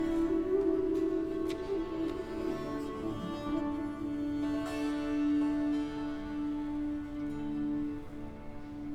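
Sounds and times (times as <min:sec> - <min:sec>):
cittern improvisation: 0:00.0 - 0:08.9.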